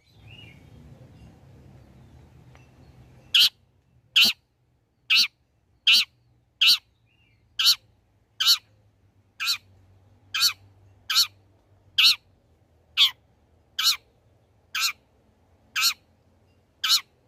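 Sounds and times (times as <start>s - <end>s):
long-tailed shrike singing vigorously with chirps, trills, whistles and buzzy phrases: 0.0s - 8.8s, 9.4s - 9.7s, 10.3s - 11.4s, 12.0s - 12.2s, 12.9s - 13.2s, 13.8s - 15.0s, 15.8s - 17.2s.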